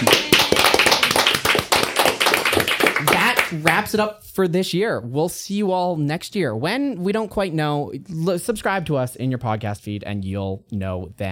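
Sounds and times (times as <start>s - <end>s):
round of applause: 0.0s - 3.8s
speech: 3.5s - 11.3s.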